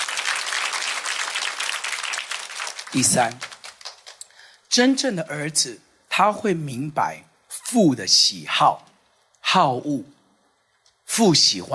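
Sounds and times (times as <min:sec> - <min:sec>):
audience clapping hands: 0:00.0 - 0:04.3
speech: 0:02.9 - 0:03.5, 0:04.8 - 0:08.9, 0:09.5 - 0:10.2, 0:11.2 - 0:11.7.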